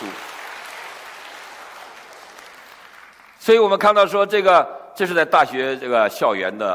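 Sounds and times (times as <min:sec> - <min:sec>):
audience applause for singers at a church gathering in a 300-year-old church: 0:00.0 - 0:03.4
speech: 0:03.4 - 0:06.7.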